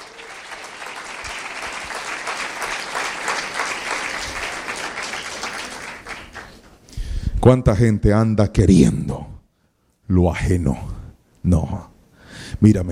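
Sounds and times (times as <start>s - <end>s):
audience applause: 0.0s - 6.6s
speech: 7.4s - 9.3s, 10.1s - 11.9s, 12.6s - 12.9s.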